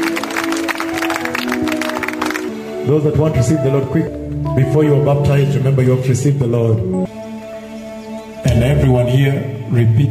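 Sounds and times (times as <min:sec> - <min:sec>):
congregation clapping at a church baptism service: 0:00.0 - 0:02.8
speech: 0:02.9 - 0:07.2, 0:08.6 - 0:10.0.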